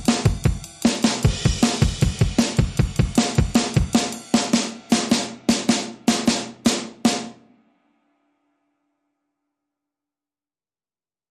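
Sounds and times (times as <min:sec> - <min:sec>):
drums: 0:00.0 - 0:07.7.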